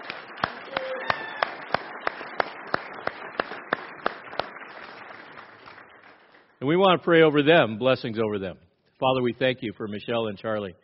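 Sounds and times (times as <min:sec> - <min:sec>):
audience applause: 0:00.0 - 0:06.6
speech: 0:06.6 - 0:10.8.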